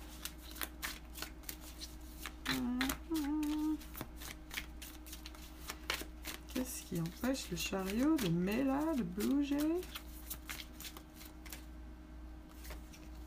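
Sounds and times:
playing cards flicked as a card is drawn from a deck: 0.0 - 11.7, 12.5 - 13.2
low hum: 0.0 - 13.2
speech: 6.9 - 10.0.

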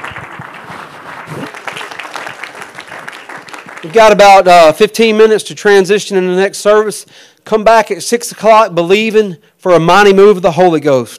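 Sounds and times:
audience clapping hands: 0.0 - 4.5
speech: 3.8 - 11.1.

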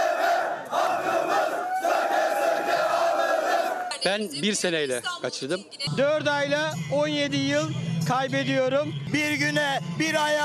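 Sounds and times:
crowd chanting at protest rally: 0.0 - 4.1
speech: 4.0 - 10.4.

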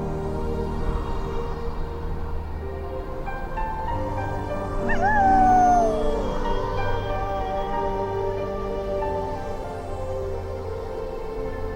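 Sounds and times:
sustained low musical tones: 0.0 - 11.7
wolf howling: 4.8 - 9.2.

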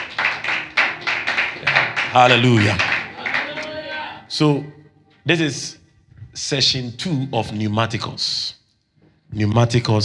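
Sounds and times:
audience clapping: 0.0 - 4.2
speech: 2.1 - 2.9, 4.3 - 5.8, 6.4 - 8.6, 9.3 - 10.0.

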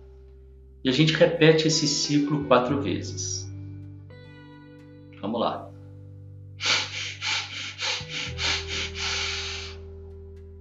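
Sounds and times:
low steady musical drone: 0.0 - 10.5
speech: 0.8 - 3.4, 5.2 - 5.7
person taking short sniffing breaths through the nose during a breathing exercise: 6.6 - 9.8.

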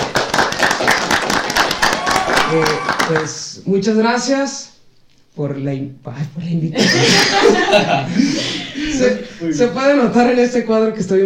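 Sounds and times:
applause for the guest: 0.0 - 3.4
speech: 2.5 - 4.7, 5.4 - 11.2
laughter: 6.8 - 9.4.

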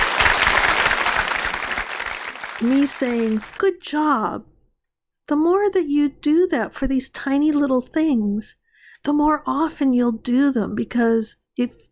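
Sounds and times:
applause: 0.0 - 3.6
speech: 2.6 - 4.5, 5.3 - 11.8.

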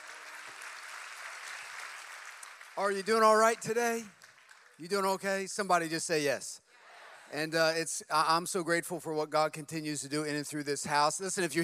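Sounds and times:
audience clapping: 0.0 - 5.5
speech: 2.8 - 4.2, 4.8 - 6.6, 7.3 - 11.6.

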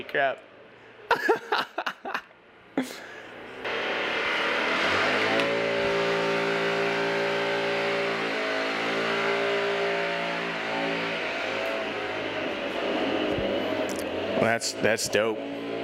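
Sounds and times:
speech: 0.0 - 0.5, 1.1 - 2.2, 14.4 - 15.5
laughter: 1.1 - 3.0
leaf blower running outside a window: 3.6 - 15.8.

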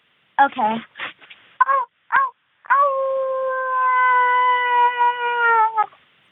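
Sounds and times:
speech: 0.4 - 1.0
person imitating werewolf howl: 1.6 - 6.0.

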